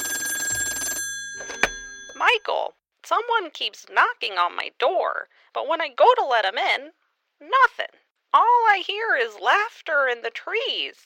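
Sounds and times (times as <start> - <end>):
telephone ringing with a rapid trilling bell: 0.0 - 2.6
speech: 2.2 - 11.0.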